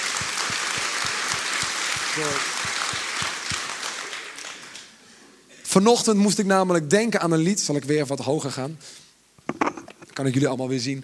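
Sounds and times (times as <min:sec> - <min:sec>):
audience applause for the pianist: 0:00.0 - 0:05.0
speech: 0:02.2 - 0:02.6, 0:05.7 - 0:09.0, 0:10.2 - 0:11.0.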